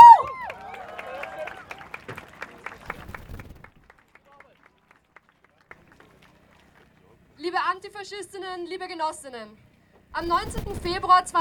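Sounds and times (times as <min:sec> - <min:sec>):
crowd applauding at a demonstration: 0:00.0 - 0:07.3
speech: 0:07.8 - 0:11.4.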